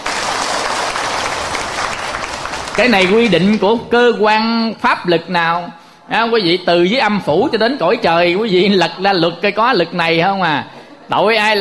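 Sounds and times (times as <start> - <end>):
audience applause: 0.0 - 3.6
speech: 2.8 - 11.5.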